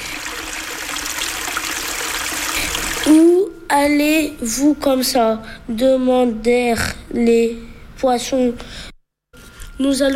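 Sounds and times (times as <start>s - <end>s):
stream water flowing over stones: 0.0s - 3.1s
speech: 3.0s - 8.9s, 9.8s - 10.1s.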